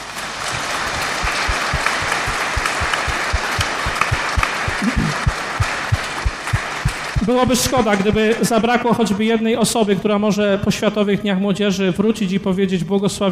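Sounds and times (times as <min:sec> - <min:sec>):
crowd applauding: 0:00.0 - 0:08.8
rhythmic low thump: 0:00.6 - 0:08.8
speech: 0:07.3 - 0:13.3.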